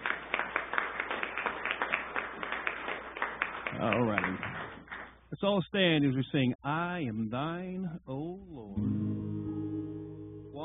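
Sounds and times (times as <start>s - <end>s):
audience applause: 0.0s - 5.2s
speech: 3.8s - 4.6s, 5.3s - 9.4s.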